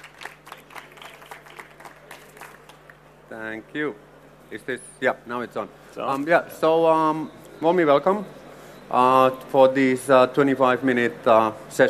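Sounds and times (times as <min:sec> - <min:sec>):
audience applause: 0:00.0 - 0:03.0
speech: 0:03.3 - 0:11.8.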